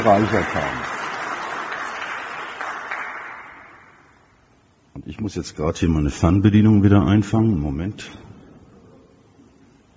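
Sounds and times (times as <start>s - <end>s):
speech: 0.0s - 0.9s, 5.1s - 8.2s
audience applause: 0.0s - 3.9s.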